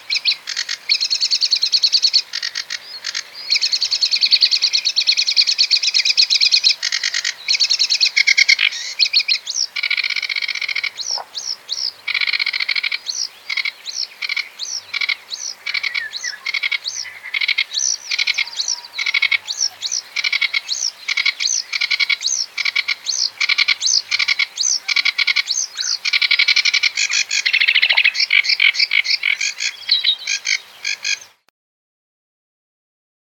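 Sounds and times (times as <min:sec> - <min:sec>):
Sedge warbler singing: 0:00.1 - 0:31.5.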